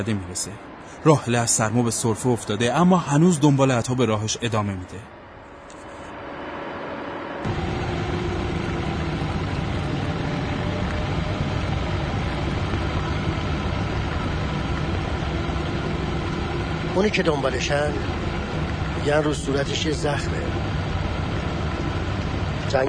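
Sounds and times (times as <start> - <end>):
speech: 0.0 - 5.2, 17.0 - 18.3, 19.0 - 20.7, 22.7 - 22.8
broad road noise: 0.0 - 22.8
Land Rover engine droning while driving on a snowy mountain road: 5.2 - 22.8.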